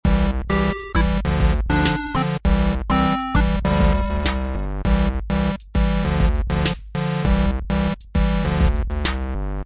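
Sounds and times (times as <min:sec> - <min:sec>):
C64 menu music: 0:00.0 - 0:09.6.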